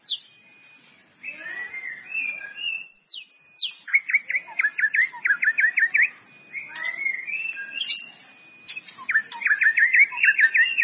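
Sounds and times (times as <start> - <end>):
White-rumped Shama song: 0.0 - 10.8.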